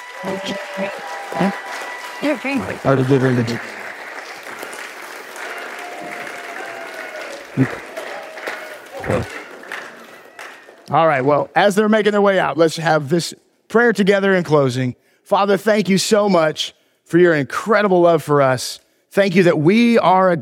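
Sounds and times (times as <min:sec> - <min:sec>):
applause from a gathering near the close of a service: 0:00.0 - 0:11.5
speech: 0:00.2 - 0:01.6, 0:02.2 - 0:03.8, 0:07.6 - 0:07.8, 0:09.1 - 0:09.4, 0:10.9 - 0:20.4.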